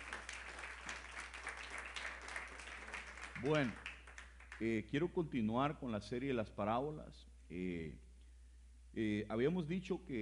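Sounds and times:
audience applauding: 0.0s - 4.6s
speech: 3.4s - 3.8s, 4.6s - 8.0s, 9.0s - 10.1s.

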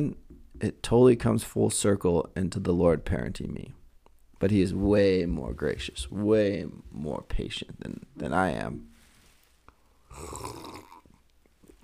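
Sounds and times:
speech: 0.0s - 3.8s, 4.4s - 8.9s, 10.2s - 10.9s
person sipping a drink: 9.7s - 11.8s.

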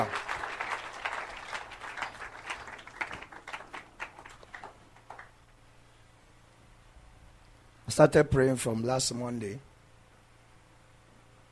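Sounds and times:
audience clapping hands: 0.0s - 5.5s
speech: 8.0s - 9.7s.

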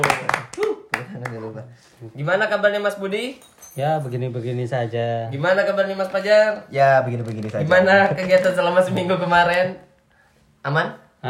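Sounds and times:
hand clapping: 0.0s - 1.6s
speech: 1.3s - 9.9s, 10.6s - 11.2s.

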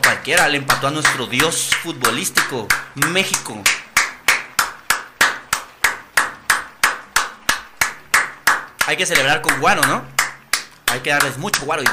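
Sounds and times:
single pair of hands clapping steadily: 0.0s - 11.9s
speech: 0.2s - 3.9s, 8.9s - 10.2s, 10.9s - 11.9s.

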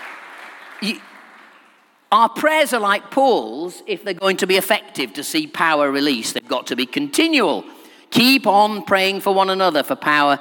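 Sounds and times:
crowd clapping: 0.0s - 2.1s
speech: 0.8s - 1.1s, 2.1s - 10.3s.

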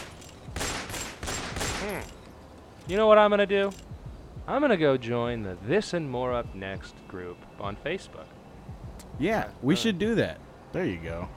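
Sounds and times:
police officers firing bursts of rapid gunshots in a comic sketch: 0.0s - 2.0s
speech: 1.8s - 2.2s, 2.9s - 3.8s, 4.5s - 8.4s, 9.2s - 11.3s.

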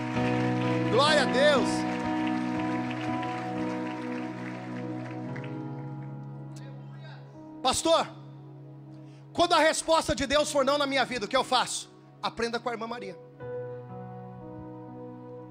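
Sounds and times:
audience applauding: 0.0s - 6.3s
speech: 1.0s - 1.9s, 7.6s - 8.2s, 9.4s - 13.2s.

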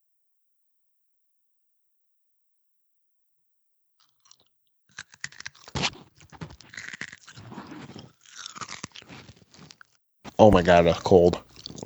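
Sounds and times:
chewing ice: 4.0s - 11.8s
speech: 10.4s - 11.8s.

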